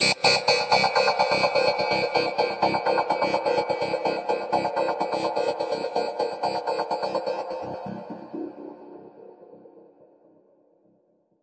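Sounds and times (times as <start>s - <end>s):
space banjo: 0.0s - 8.7s.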